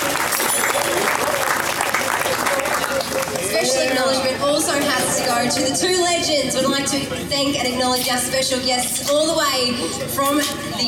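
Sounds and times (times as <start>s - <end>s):
crowd applause: 0.0s - 3.8s
speech: 4.8s - 10.8s.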